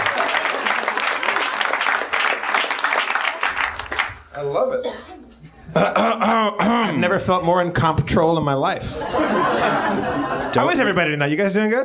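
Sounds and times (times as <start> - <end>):
laughter: 0.0 - 1.5, 8.8 - 11.2
audience applause: 0.0 - 4.2
speech: 4.5 - 11.8.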